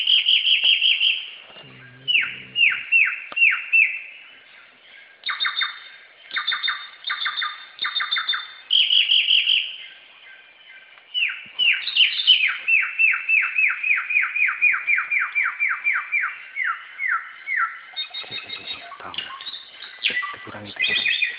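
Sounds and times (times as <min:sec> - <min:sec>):
singing: 0:00.0 - 0:21.3.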